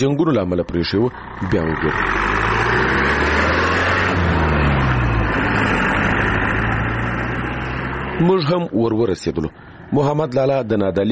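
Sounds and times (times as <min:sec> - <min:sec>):
speech: 0:00.0 - 0:02.5, 0:08.2 - 0:11.0
old motorcycle speeding along the main road between Nad Ali and Marja: 0:00.0 - 0:10.6.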